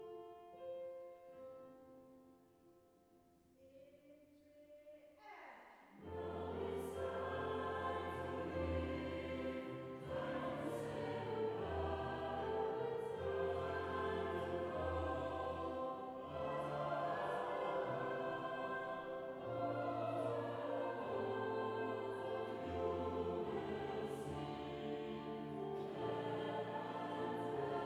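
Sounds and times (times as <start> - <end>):
SATB four-part choir singing: 5.9 - 27.8.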